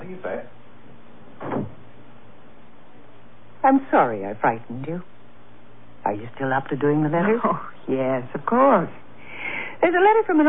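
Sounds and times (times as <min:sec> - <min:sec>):
door closing thud: 0:01.4 - 0:01.9
speech: 0:03.6 - 0:05.1, 0:06.1 - 0:09.0, 0:09.8 - 0:10.4.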